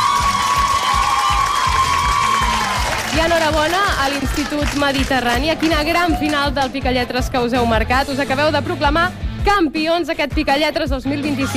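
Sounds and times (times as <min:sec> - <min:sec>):
audience applause: 0:00.0 - 0:06.5
speech: 0:03.2 - 0:11.5.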